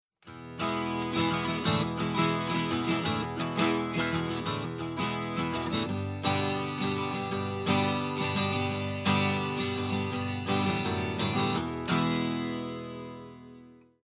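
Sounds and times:
electric guitar through preamp with output full and input low: 0.4 - 13.3.

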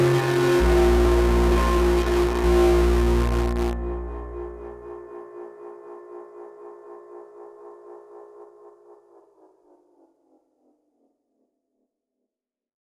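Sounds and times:
distorted synth: 0.0 - 5.2.

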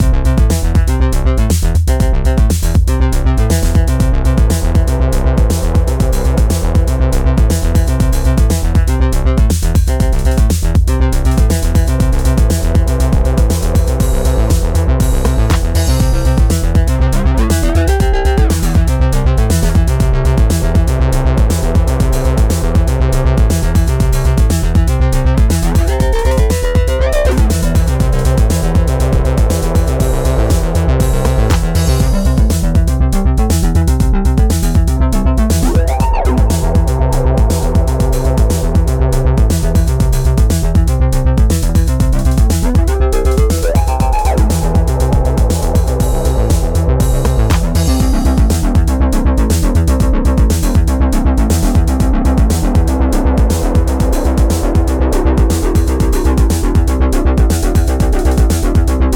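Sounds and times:
Moogerfooger synth: 0.0 - 59.1.

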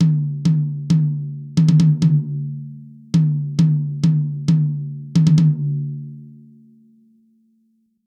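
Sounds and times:
TG I51 high tom drum: 0.0 - 2.6, 3.2 - 5.8.

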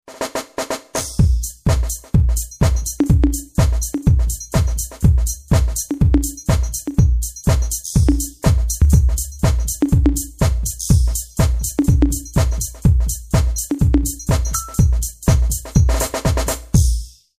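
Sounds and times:
techno set: 1.2 - 16.5.

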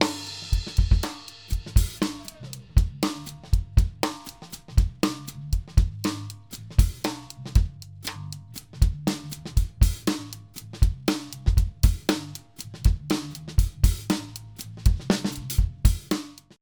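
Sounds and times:
rock snare drum: 0.0 - 5.4, 9.1 - 16.6
rock drum overhead cymbals: 0.0 - 16.4.

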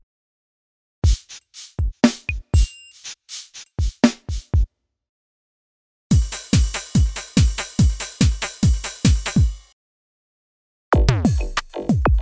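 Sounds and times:
drums: 1.0 - 4.7, 6.1 - 9.7, 11.0 - 12.1.

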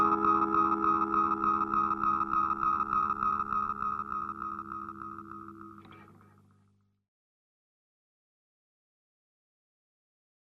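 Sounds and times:
Way Huge Aqua Puss delay pedal oscillation: 0.0 - 6.4.

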